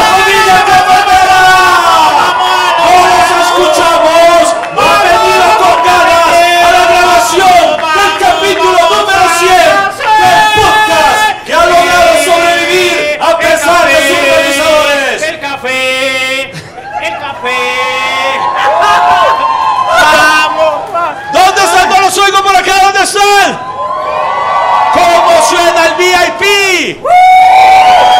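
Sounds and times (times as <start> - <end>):
crowd chanting in a stadium stand: 0.0 - 15.2
shouts: 0.0 - 15.2, 16.8 - 28.1.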